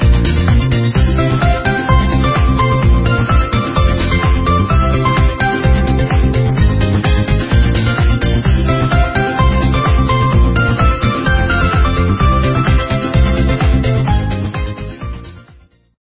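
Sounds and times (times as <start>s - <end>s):
easy run soundtrack music: 0.0s - 15.9s.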